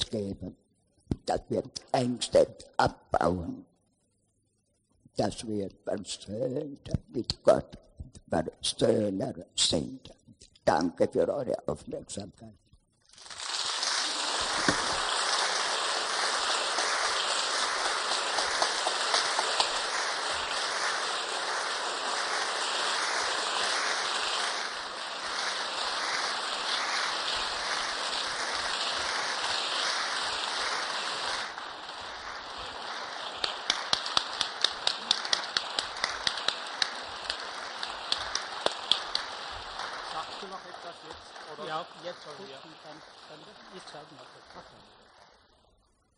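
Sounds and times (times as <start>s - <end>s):
speech: 0.1s - 0.7s, 1.3s - 3.7s, 5.2s - 12.6s
audience applause: 13.4s - 44.8s.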